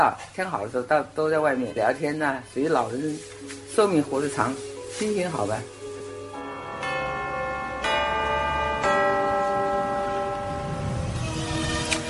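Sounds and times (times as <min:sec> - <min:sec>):
speech: 0:00.0 - 0:05.8
Customs House clock tower bell chiming: 0:06.4 - 0:12.0.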